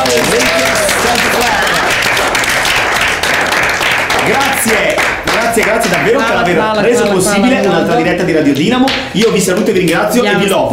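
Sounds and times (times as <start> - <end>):
audience applause: 0.0 - 8.1
speech: 5.6 - 10.7.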